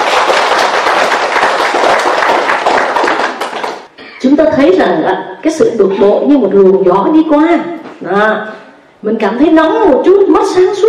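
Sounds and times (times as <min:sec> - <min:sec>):
audience applause: 0:00.0 - 0:03.9
speech: 0:04.8 - 0:10.8.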